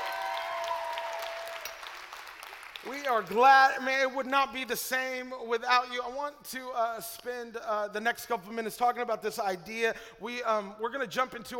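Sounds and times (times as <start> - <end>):
audience clapping: 0.0 - 3.8
speech: 2.8 - 11.5.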